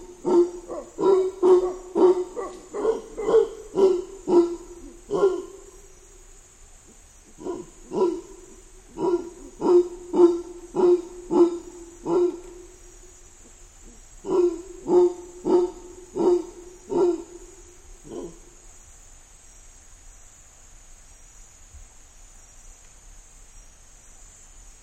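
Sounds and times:
mantled howler monkey: 0.0 - 6.0, 6.9 - 12.8, 13.4 - 18.6.

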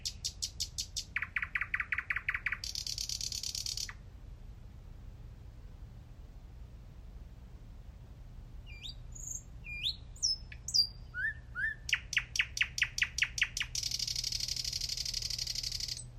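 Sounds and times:
thrush nightingale Luscinia luscinia singing: 0.0 - 4.0, 8.6 - 16.1.

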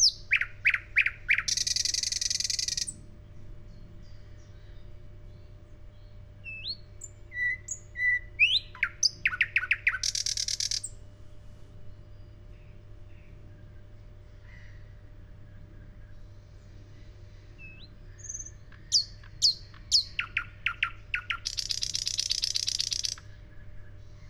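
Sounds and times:
thrush nightingale Luscinia luscinia singing: 0.0 - 3.0, 3.7 - 11.0, 17.5 - 23.9.

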